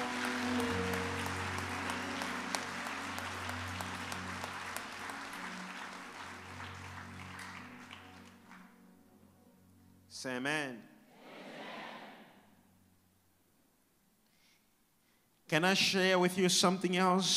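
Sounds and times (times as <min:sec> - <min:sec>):
crowd audience clapping hands: 0:00.0 - 0:08.8
speech: 0:10.2 - 0:10.9, 0:15.5 - 0:17.3.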